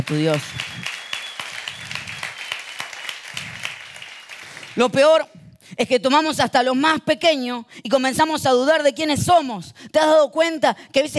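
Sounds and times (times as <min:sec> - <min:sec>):
audience applause: 0:00.0 - 0:04.9
speech: 0:00.1 - 0:00.7, 0:04.8 - 0:11.1.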